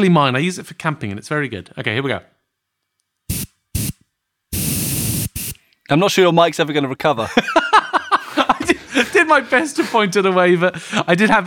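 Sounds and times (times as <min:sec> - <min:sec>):
speech: 0:00.0 - 0:02.4, 0:05.9 - 0:07.6, 0:09.0 - 0:11.4
Girls Only Dawn Till Dusk dry shampoo sprayed from an aerosol can: 0:03.3 - 0:05.6
laughter: 0:07.2 - 0:11.4.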